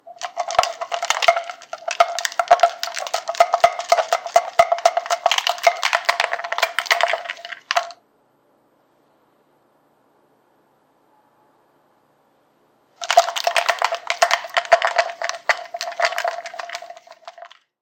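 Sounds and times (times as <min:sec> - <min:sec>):
protein shake being shaken before the gym: 0:00.0 - 0:08.0, 0:13.0 - 0:17.7.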